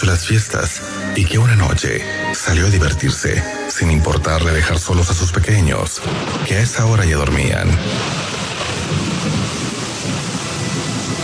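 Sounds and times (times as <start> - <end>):
speech: 0.0 - 8.3
heavy rain: 0.0 - 11.2
thunder: 6.0 - 11.2.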